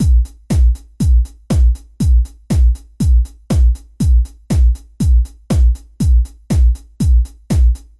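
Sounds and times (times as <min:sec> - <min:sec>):
kick drum: 0:00.0 - 0:07.9.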